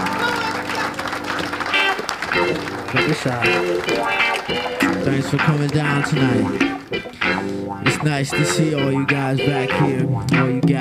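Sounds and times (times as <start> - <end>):
audience applause at a show at PJ's: 0.0 - 7.1
crowd noise at a show at PJ's: 0.0 - 10.7
speech: 3.0 - 10.7.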